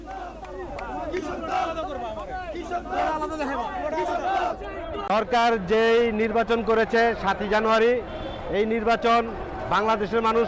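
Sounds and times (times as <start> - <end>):
BNP activists chanting slogans at a rally in Naya Paltan: 0.0 - 5.1
speech: 2.8 - 10.4.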